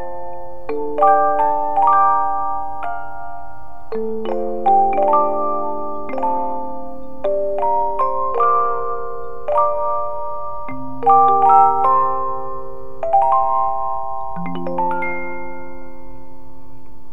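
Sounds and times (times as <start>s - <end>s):
50 note music box playing a piece in two parts: 0.0s - 17.1s.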